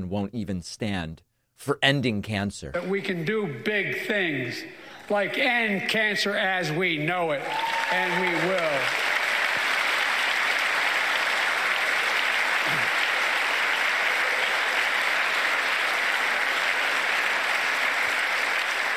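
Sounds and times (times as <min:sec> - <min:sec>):
speech: 0:00.0 - 0:09.1
audience applause: 0:07.4 - 0:18.9.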